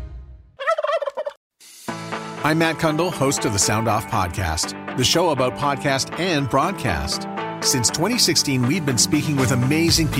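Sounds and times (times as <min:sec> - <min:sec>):
flock of turkeys gobbling: 0:00.6 - 0:01.4
speech: 0:02.5 - 0:10.1.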